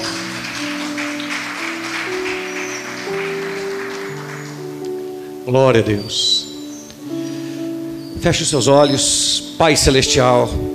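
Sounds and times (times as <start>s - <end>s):
audience applauding: 0.0s - 5.2s
sustained keyboard chords: 0.0s - 10.7s
speech: 5.5s - 6.4s, 8.2s - 10.7s.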